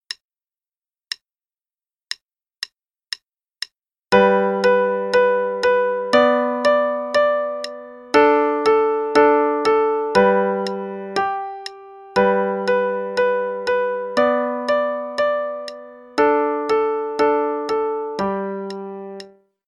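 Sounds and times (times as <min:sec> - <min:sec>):
play-along music: 0:04.1 - 0:19.4.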